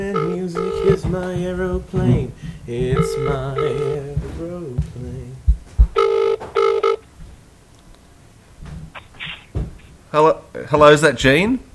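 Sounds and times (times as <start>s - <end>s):
telephone ringing: 0.0s - 1.6s, 2.9s - 4.1s, 5.9s - 7.0s
speech: 0.0s - 5.4s, 10.1s - 11.7s.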